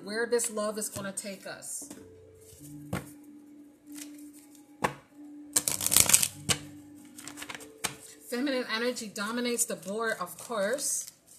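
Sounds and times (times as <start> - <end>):
speech: 0.0 - 2.9, 8.3 - 11.1
oracle cards snapping, tapping and riffling: 3.9 - 5.0, 5.6 - 6.6, 7.2 - 8.1.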